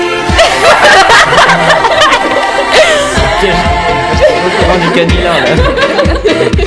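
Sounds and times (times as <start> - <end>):
laughter: 0.2 - 6.6
French rap song: 2.8 - 6.6
speech: 5.0 - 5.9.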